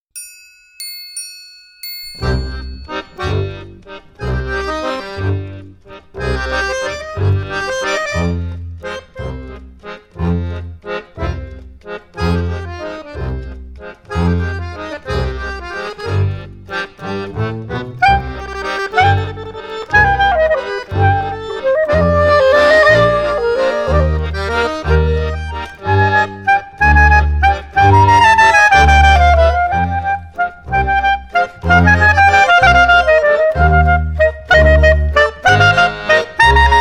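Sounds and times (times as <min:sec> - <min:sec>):
waltz music: 0:01.2 - 0:36.7.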